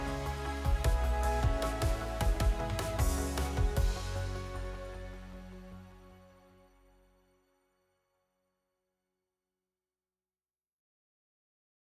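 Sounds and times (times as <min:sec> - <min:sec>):
music: 0:00.0 - 0:07.2.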